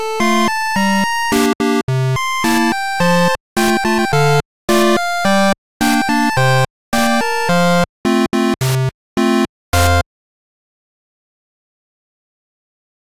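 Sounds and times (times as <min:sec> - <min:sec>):
8-bit chiptune music loop: 0:00.0 - 0:10.0.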